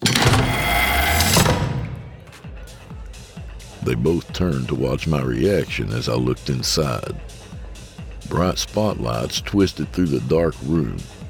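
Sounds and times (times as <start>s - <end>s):
door sliding open: 0.0s - 2.5s
metallic clank: 0.0s - 2.5s
pneumatic hiss: 0.0s - 2.5s
speech: 3.9s - 7.3s, 8.3s - 11.2s.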